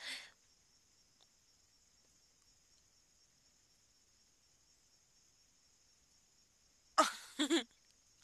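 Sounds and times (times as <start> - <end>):
woman giggling outdoors: 7.0 - 7.7.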